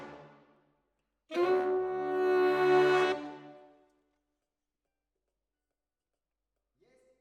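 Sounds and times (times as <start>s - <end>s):
saxophone: 1.3s - 3.7s.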